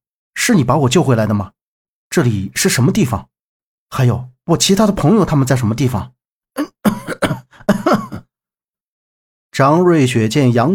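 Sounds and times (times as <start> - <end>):
speech: 0.5 - 3.3, 3.9 - 6.8, 9.6 - 10.7
violent hacking coughs: 6.6 - 8.3.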